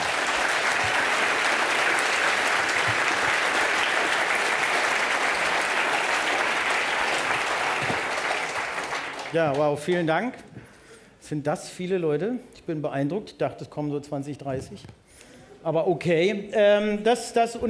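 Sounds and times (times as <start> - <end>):
audience applause: 0.0 - 10.1
speech: 9.3 - 10.5, 11.3 - 15.0, 15.6 - 17.6.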